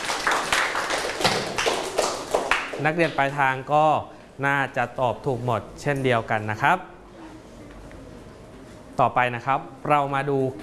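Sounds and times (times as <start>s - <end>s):
hands clapping: 0.0s - 3.4s
speech: 2.8s - 6.9s, 9.0s - 10.6s.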